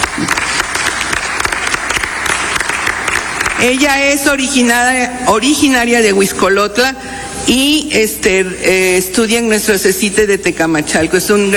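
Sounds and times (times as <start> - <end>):
audience applause: 0.0 - 3.8
speech: 3.6 - 11.5.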